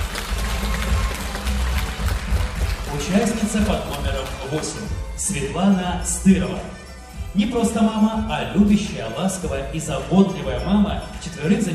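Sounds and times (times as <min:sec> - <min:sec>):
audience applause at a mothers' contest: 0:00.0 - 0:05.0
speech: 0:03.0 - 0:06.8, 0:07.4 - 0:11.7.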